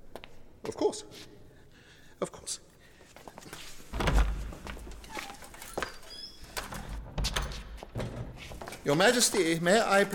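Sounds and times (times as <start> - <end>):
speech: 0.7 - 1.4, 2.2 - 2.7, 8.8 - 10.1
slow heavy footsteps entering: 3.1 - 9.7
door opening with a low thunk: 3.9 - 9.4.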